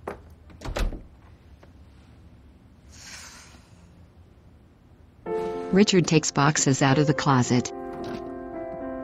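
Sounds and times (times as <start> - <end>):
door pushed shut with a thud and rattle: 0.6 - 1.1
soft airy hiss: 1.8 - 4.1
speech: 5.7 - 7.8.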